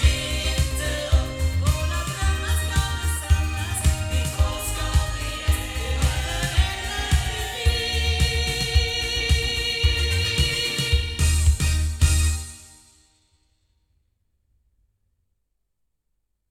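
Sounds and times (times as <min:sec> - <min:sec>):
loudspeakers: 0:00.0 - 0:12.3.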